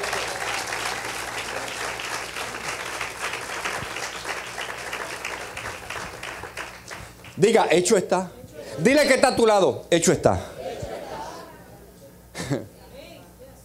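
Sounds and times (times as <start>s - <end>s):
loud audience applause: 0.0s - 7.4s
speech: 7.4s - 10.6s
laughter: 10.4s - 12.8s.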